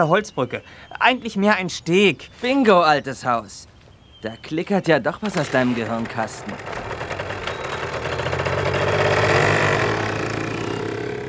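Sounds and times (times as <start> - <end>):
speech: 0.0 - 6.9
motorcycle engines revving: 5.2 - 11.2.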